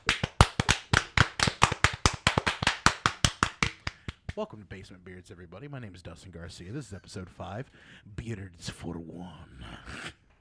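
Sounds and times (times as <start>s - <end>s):
group clapping hands together: 0.0s - 4.4s
speech: 4.4s - 10.1s.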